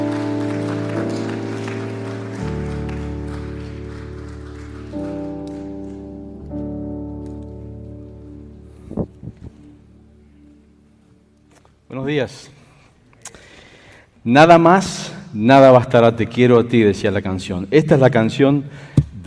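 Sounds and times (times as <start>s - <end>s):
audience applauding: 0.0s - 6.6s
sustained keyboard chords: 0.0s - 12.4s
speech: 12.0s - 12.6s, 14.2s - 19.2s.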